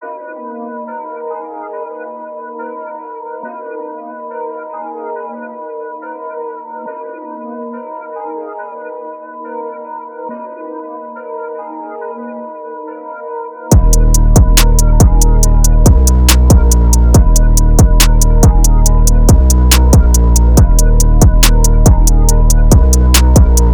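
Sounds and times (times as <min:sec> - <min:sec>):
music beat: 0:13.7 - 0:23.7.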